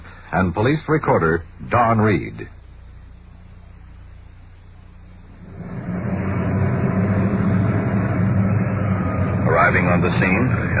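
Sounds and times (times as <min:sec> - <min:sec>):
speech: 0:00.3 - 0:02.6, 0:09.7 - 0:10.7
police car engine rumbling and idling: 0:02.6 - 0:10.7.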